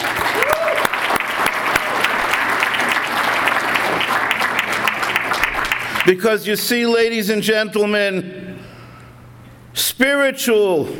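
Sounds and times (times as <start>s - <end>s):
rousing applause from a large audience: 0.0s - 6.1s
speech: 6.1s - 8.4s, 9.8s - 10.9s.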